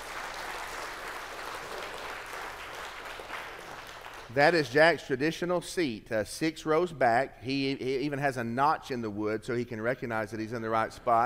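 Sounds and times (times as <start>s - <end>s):
church congregation applauding a guest during a morning service: 0.0s - 4.7s
speech: 4.3s - 11.2s.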